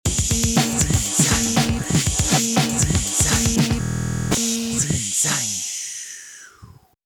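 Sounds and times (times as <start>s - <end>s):
glitch noise: 0.1s - 5.6s.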